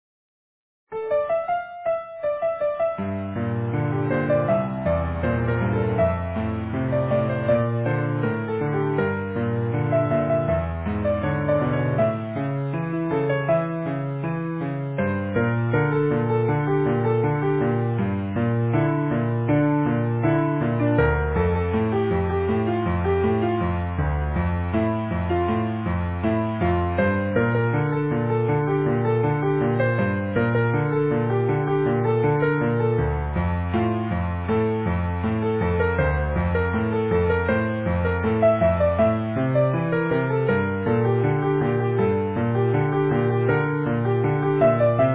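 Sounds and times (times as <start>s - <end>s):
easy piano: 0.9s - 45.1s.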